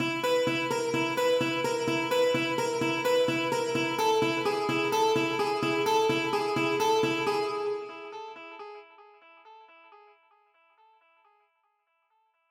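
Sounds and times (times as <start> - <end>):
acoustic guitar: 0.0 - 8.8.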